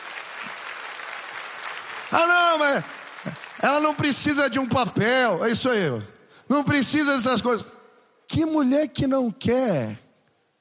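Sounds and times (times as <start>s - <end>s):
audience applause: 0.0s - 4.7s
speech: 2.1s - 10.0s.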